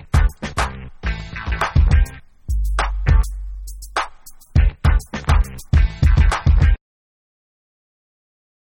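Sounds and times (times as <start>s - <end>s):
instrumental music: 0.0s - 6.8s.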